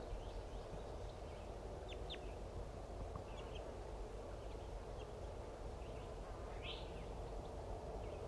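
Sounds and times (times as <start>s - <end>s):
chittering calls of a bird pair: 0.0s - 8.2s.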